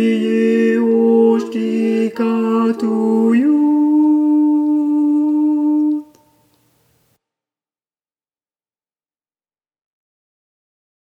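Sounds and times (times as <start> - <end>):
tenors singing: 0.0 - 6.7.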